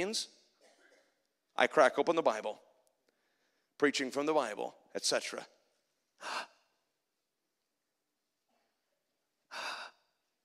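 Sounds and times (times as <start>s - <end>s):
speech: 0.0s - 0.4s, 1.6s - 2.7s, 3.8s - 5.6s, 6.2s - 6.5s
sharp breathy inhalations during a sermon: 6.2s - 6.7s, 9.5s - 10.1s.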